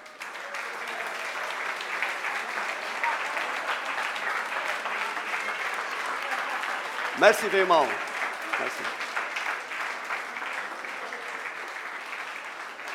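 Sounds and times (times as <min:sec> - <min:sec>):
audience applause: 0:00.0 - 0:12.9
speech: 0:07.2 - 0:09.0.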